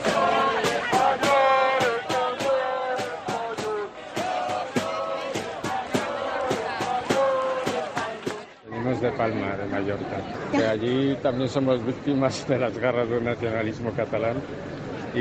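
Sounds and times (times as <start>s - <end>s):
rhythmic claps or drum hits: 0.0s - 8.5s
demonstration crowd shouting and chanting: 0.0s - 10.5s
speech: 9.1s - 15.1s.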